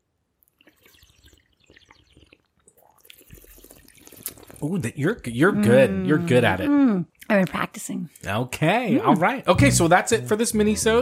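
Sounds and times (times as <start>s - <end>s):
slurping wine: 0.5s - 6.7s
speech: 4.6s - 11.0s.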